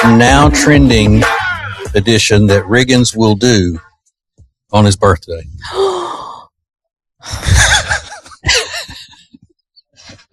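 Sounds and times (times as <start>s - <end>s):
speech: 0.0s - 3.9s, 4.7s - 5.9s
person gasping: 5.6s - 6.5s
laughter: 7.3s - 9.4s.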